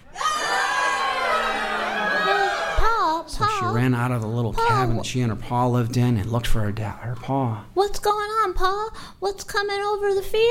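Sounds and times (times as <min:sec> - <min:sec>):
crowd of people screaming: 0:00.0 - 0:03.1
speech: 0:03.6 - 0:10.4.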